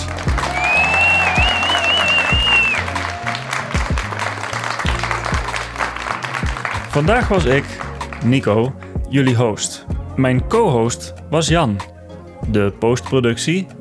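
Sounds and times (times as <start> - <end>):
crowd applauding: 0.0 - 9.0
wavering high whistle: 0.5 - 2.9
speech: 7.0 - 11.9, 12.5 - 13.7.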